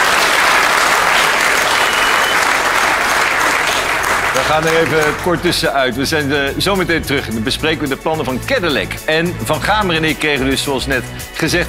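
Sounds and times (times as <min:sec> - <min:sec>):
applause: 0:00.0 - 0:05.5
speech: 0:04.4 - 0:11.6.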